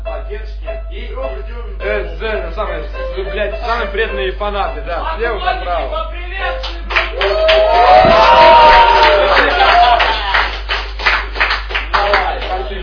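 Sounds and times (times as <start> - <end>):
speech: 0.3 - 9.9
audience applause: 6.6 - 12.8
cheering and whooping voices: 7.1 - 10.7.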